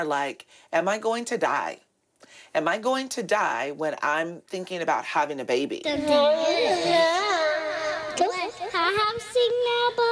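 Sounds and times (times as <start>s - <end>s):
speech: 0.0s - 7.2s
2-year-old toddler fussing and whining in a family living room: 5.9s - 8.7s
2-year-old toddler babbling: 5.9s - 10.1s.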